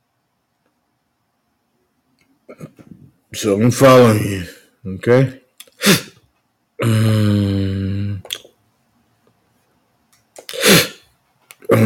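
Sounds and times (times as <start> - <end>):
speech: 3.3 - 6.1
breathy bursts: 6.8 - 8.2, 10.4 - 11.0
loud burp: 6.8 - 8.2.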